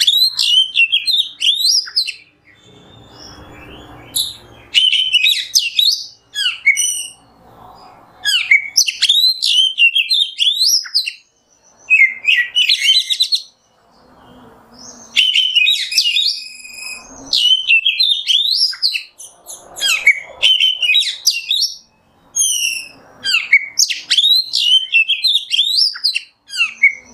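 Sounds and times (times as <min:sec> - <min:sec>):
Oriental magpie-robin song: 0:00.0 - 0:27.1.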